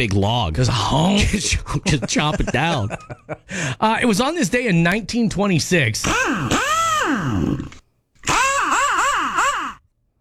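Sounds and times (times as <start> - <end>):
speech: 0.0 - 7.8
laughter: 1.2 - 3.8
impact wrench on car assembly line: 6.0 - 9.8.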